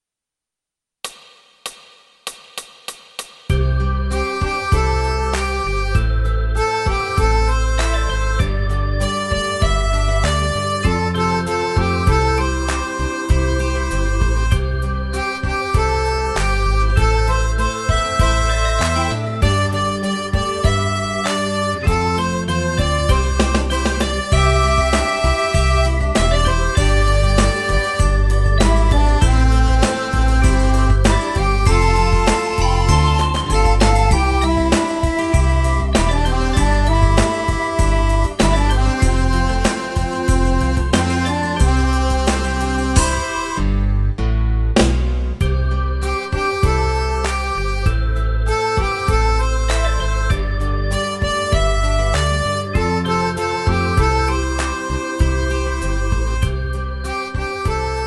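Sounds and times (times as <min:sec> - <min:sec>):
accordion playing tutti: 0:03.5 - 0:58.0.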